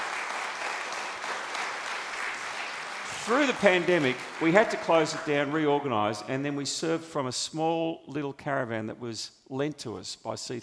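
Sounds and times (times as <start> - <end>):
crowd applauding: 0.0 - 5.7
speech: 3.3 - 10.6.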